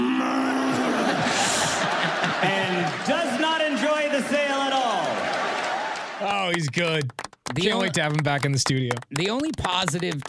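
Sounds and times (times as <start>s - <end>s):
voice imitating a cow mooing: 0.0s - 1.2s
laughter: 0.6s - 5.6s
speech: 2.4s - 4.8s, 6.2s - 10.2s.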